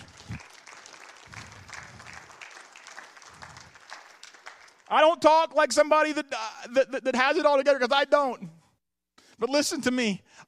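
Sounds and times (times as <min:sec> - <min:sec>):
audience applause: 0:00.0 - 0:04.9
speech: 0:04.9 - 0:08.5, 0:09.4 - 0:10.4.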